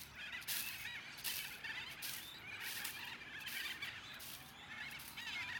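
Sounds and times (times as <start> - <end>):
cockatoo calls: 0.0 - 5.5.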